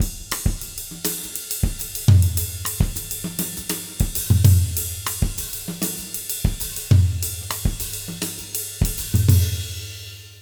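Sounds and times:
Mozambique latin jazz drum loop: 0.0s - 10.4s.

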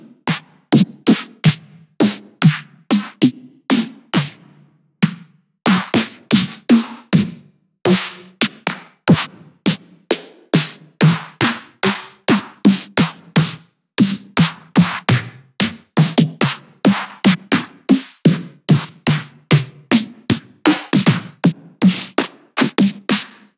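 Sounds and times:
synth snare drums: 0.3s - 3.3s, 5.0s - 7.2s, 7.9s - 23.5s.

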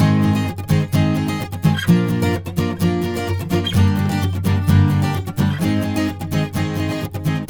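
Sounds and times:
acoustic Latin guitar in G sharp major: 0.0s - 7.4s.

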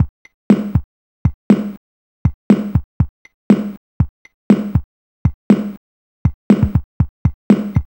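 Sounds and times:
Apple II chiptune breakbeat drums: 0.5s - 7.9s.

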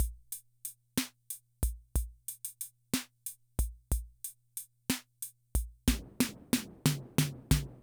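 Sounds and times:
classic drum machine rhythm loop: 0.0s - 0.4s, 1.0s - 2.7s, 3.6s - 4.4s, 5.6s - 7.8s.

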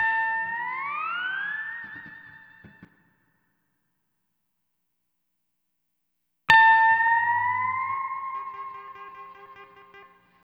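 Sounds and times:
steel guitar lounge music: 0.0s - 2.9s, 6.5s - 10.4s.

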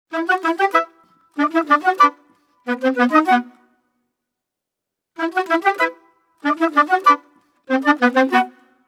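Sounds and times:
orchestral woodwind arrangement in E minor: 0.1s - 3.6s, 5.2s - 8.6s.

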